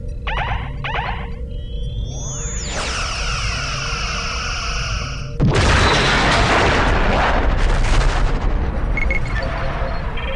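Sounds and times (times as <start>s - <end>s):
starship phaser rising electronic whine in a Star Trek video game: 0.0s - 5.4s
heavy booming blasts in a Star Trek video game: 5.3s - 10.2s.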